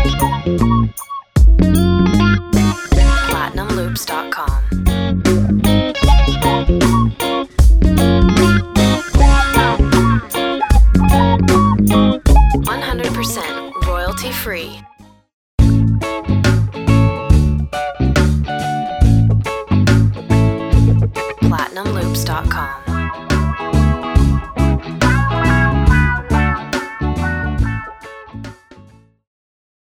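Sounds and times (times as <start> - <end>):
reggae guitar loop: 0.0 - 14.6, 15.6 - 28.7
voice with ducking: 3.0 - 4.8, 12.6 - 14.8, 21.5 - 22.9.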